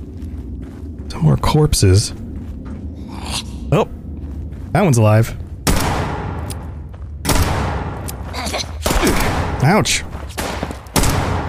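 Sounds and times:
speech: 0:01.1 - 0:02.2, 0:03.7 - 0:03.9, 0:04.8 - 0:05.4, 0:09.6 - 0:10.1
video game gunfire in a mine shootout: 0:05.6 - 0:06.5, 0:07.2 - 0:11.4.

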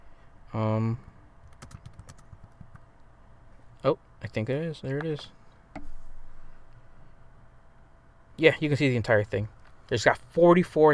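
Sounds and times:
speech: 0:00.5 - 0:01.1, 0:03.8 - 0:05.9, 0:08.4 - 0:10.9
typing on a computer keyboard in a small confined space: 0:01.4 - 0:02.8.

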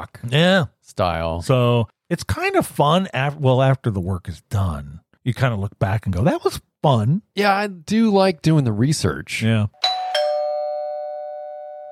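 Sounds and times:
speech: 0:00.0 - 0:09.8
doorbell chime: 0:09.8 - 0:11.9.

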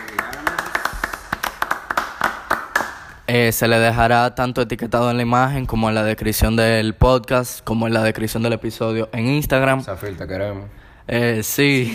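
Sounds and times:
people clapping: 0:00.0 - 0:03.3
speech: 0:03.3 - 0:11.9.

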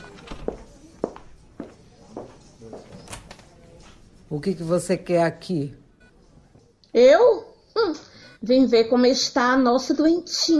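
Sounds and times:
woman's footsteps along a hospital corridor: 0:00.0 - 0:04.1
speech: 0:04.3 - 0:05.8, 0:07.0 - 0:07.4, 0:08.4 - 0:10.5.

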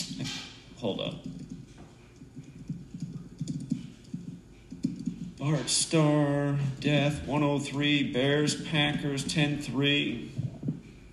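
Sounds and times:
speech: 0:00.8 - 0:01.3, 0:05.4 - 0:10.4
typing on a computer keyboard: 0:01.0 - 0:06.1.

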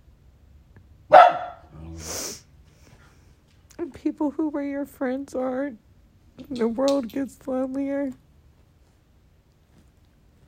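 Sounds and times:
dog barking: 0:01.1 - 0:01.8
speech: 0:04.0 - 0:08.2.

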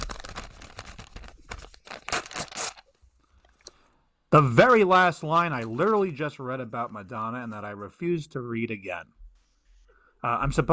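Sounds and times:
envelope being torn open at a mock awards show: 0:00.0 - 0:02.9
speech: 0:04.3 - 0:09.2, 0:10.2 - 0:10.7.

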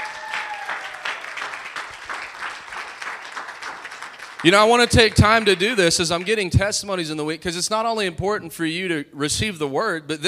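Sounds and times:
audience applause: 0:00.0 - 0:06.4
speech: 0:04.4 - 0:10.2.

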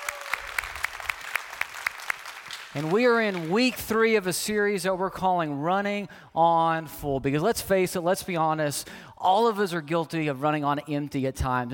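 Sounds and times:
church congregation clapping to welcome its online family: 0:00.0 - 0:04.3
speech: 0:02.8 - 0:11.7.

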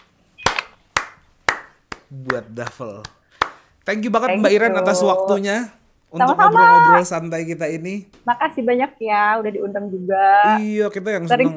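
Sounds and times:
hand clapping: 0:00.0 - 0:03.7
speech: 0:02.1 - 0:03.2, 0:03.9 - 0:11.5.

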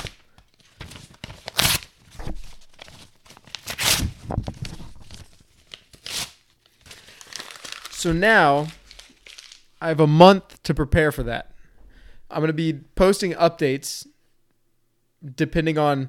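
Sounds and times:
page of paper torn up by hand: 0:00.0 - 0:00.2, 0:00.8 - 0:09.6
speech: 0:08.0 - 0:08.8, 0:09.8 - 0:11.5, 0:12.3 - 0:14.1, 0:15.2 - 0:16.0.

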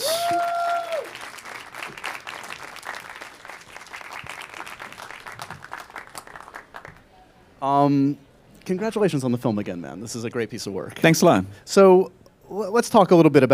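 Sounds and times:
film event audience clapping to greet an actor guest: 0:00.0 - 0:07.1
speech: 0:07.6 - 0:13.5.

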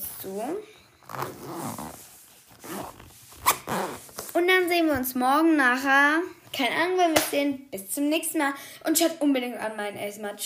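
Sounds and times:
soft rustling of things packed into a pencil case: 0:00.0 - 0:05.3
speech: 0:00.2 - 0:03.2, 0:04.4 - 0:10.4
pencil case zipper pulls: 0:01.0 - 0:04.4.

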